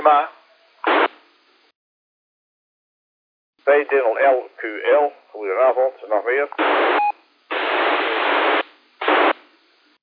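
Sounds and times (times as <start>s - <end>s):
speech: 0.0s - 0.4s, 3.7s - 7.0s
radio static bursts on repeater: 0.8s - 1.2s, 6.6s - 9.5s.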